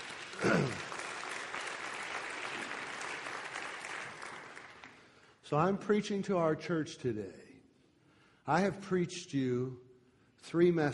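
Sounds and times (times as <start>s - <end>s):
church congregation clapping at a Baptist service: 0.0s - 5.3s
speech: 5.5s - 7.4s, 8.5s - 10.9s.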